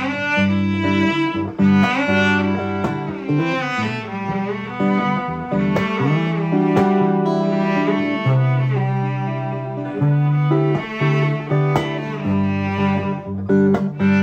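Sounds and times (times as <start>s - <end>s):
upbeat strings: 0.0s - 14.2s.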